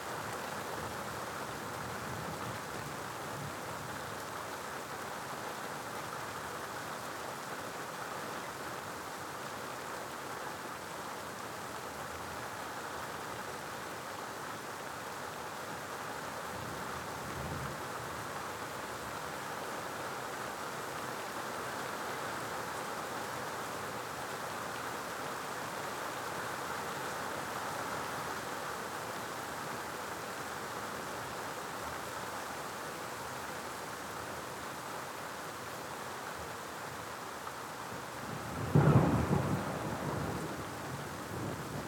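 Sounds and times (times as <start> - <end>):
rain at night: 0.0 - 41.8
thunder crack and rumble: 38.6 - 41.8.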